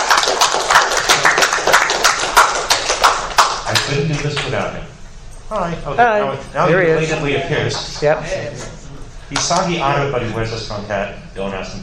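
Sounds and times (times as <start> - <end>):
audience applause: 0.0 - 4.0
speech: 4.2 - 11.8.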